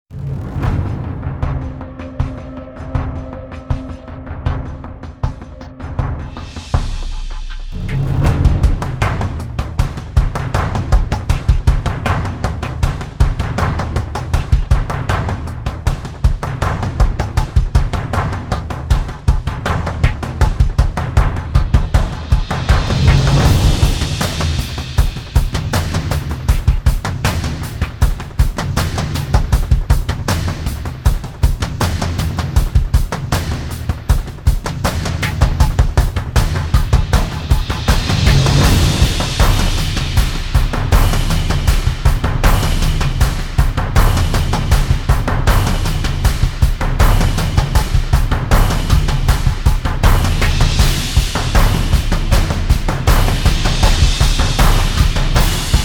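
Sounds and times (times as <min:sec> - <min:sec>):
drums: 0:00.0 - 0:55.8.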